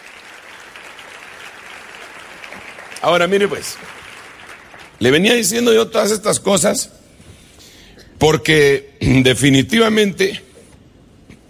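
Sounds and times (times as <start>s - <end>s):
congregation applauding the King during a church service: 0.0s - 5.8s
speech: 3.0s - 4.0s, 5.0s - 7.0s, 8.2s - 10.4s.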